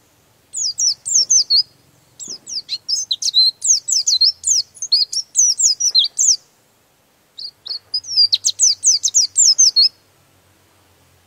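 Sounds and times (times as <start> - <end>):
songbird singing high quick chattering and whistled phrases: 0.5 - 6.5, 7.4 - 10.0.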